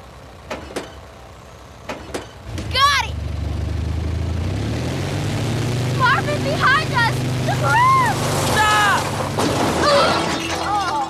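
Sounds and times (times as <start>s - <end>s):
car engine humming while shifted into reverse at the edge of a pool: 0.0s - 11.0s.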